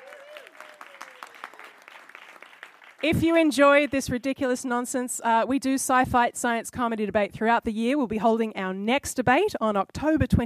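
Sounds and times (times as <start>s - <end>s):
audience round of applause: 0.0s - 4.2s
speech: 3.0s - 10.4s.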